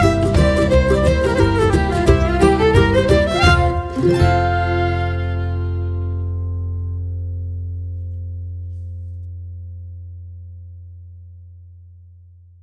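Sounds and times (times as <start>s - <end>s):
reel tune: 0.0s - 7.2s.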